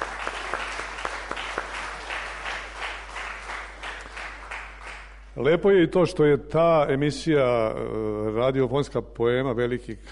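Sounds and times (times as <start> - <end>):
audience applause: 0.0 - 5.2
speech: 5.4 - 10.1.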